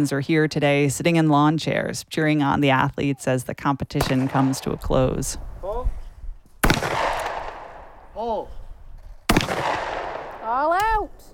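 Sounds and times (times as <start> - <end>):
speech: 0.0 - 6.0, 8.2 - 8.6
shotgun blasts at a shooting competition: 4.0 - 5.2, 6.6 - 8.1, 9.3 - 10.6.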